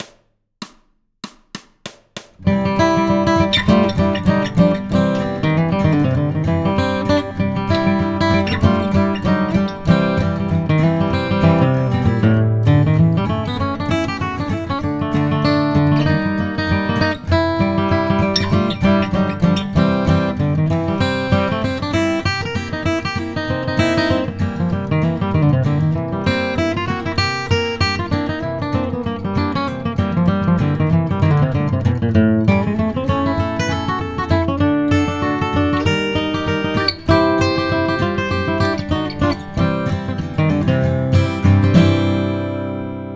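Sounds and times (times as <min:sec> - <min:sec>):
blues guitar: 0:02.4 - 0:43.1.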